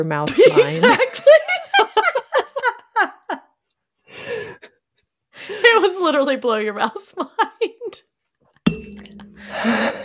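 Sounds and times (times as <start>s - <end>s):
speech: 0.0s - 1.4s, 6.1s - 8.1s
laughter: 0.3s - 3.5s
glass being accidentally hit, clinking: 8.7s - 10.0s.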